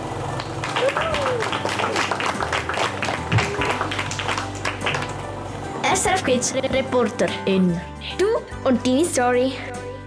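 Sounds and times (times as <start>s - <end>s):
audience applause: 0.2s - 5.8s
speech: 6.3s - 9.8s.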